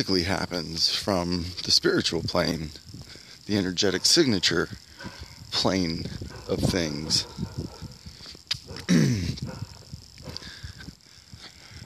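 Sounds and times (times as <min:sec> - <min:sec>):
speech: 0:00.0 - 0:07.4
dog barking in the distance: 0:05.0 - 0:05.4, 0:06.2 - 0:08.0, 0:08.6 - 0:10.5.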